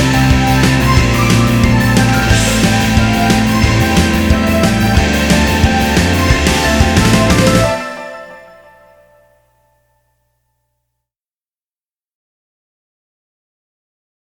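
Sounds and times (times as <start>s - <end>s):
off vocal instrumental music: 0.0s - 9.4s.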